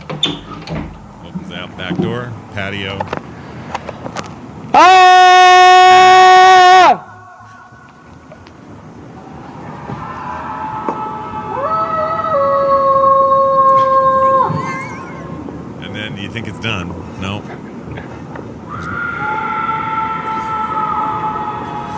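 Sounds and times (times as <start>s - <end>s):
speech: 1.7s - 3.2s
people screaming from windows at night: 4.7s - 8.3s, 9.1s - 15.6s, 18.6s - 21.9s.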